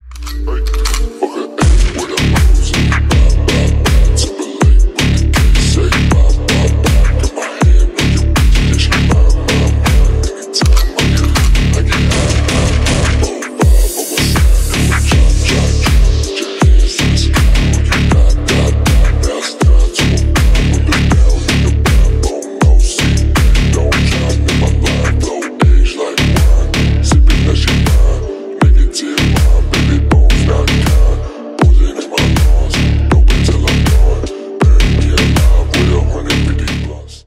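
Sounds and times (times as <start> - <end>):
remix music: 0.0 - 37.2.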